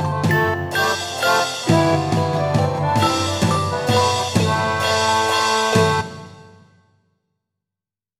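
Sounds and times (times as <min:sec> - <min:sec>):
celesta waltz: 0:00.0 - 0:05.7.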